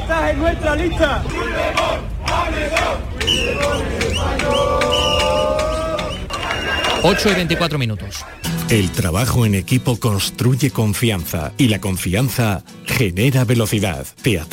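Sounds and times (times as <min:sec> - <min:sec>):
protest crowd chanting slogans: 0:00.0 - 0:08.6
speech: 0:00.1 - 0:05.1, 0:07.0 - 0:14.5
whistles: 0:03.2 - 0:07.4, 0:08.2 - 0:08.6, 0:12.8 - 0:13.1.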